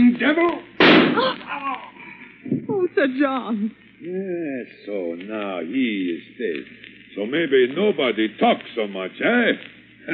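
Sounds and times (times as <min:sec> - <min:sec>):
gunshots: 0:00.8 - 0:01.4
speech: 0:02.9 - 0:10.1.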